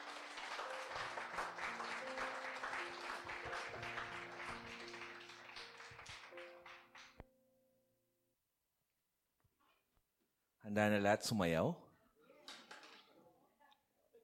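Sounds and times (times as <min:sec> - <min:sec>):
crowd applauding: 0:00.0 - 0:07.2
speech: 0:10.7 - 0:11.8.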